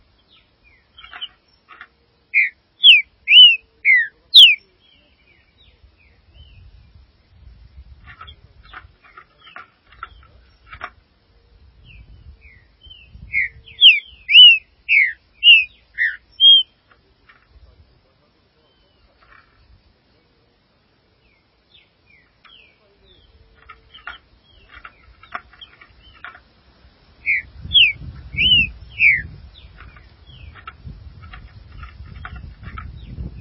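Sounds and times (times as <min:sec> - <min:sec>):
green-winged saltator whistled song: 0:02.3 - 0:05.1, 0:11.8 - 0:16.8, 0:27.2 - 0:30.7.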